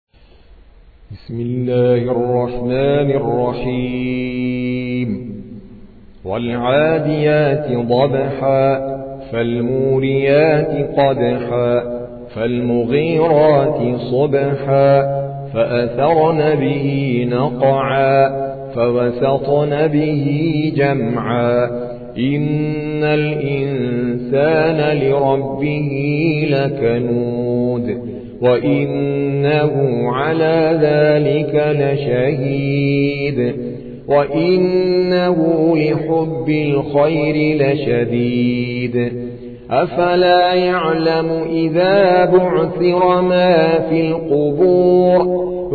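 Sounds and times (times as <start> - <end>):
Quran recitation by an Indian reciter: 1.1 - 45.7.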